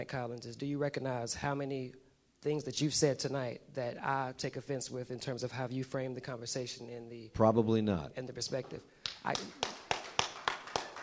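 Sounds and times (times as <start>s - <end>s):
speech: 0.0s - 9.8s
slow applause during a heated public debate: 9.0s - 11.0s.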